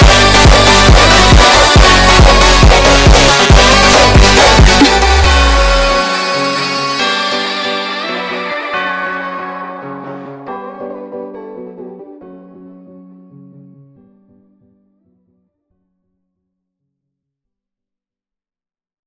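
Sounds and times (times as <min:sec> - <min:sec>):
sped up montagem music: 0:00.0 - 0:14.8.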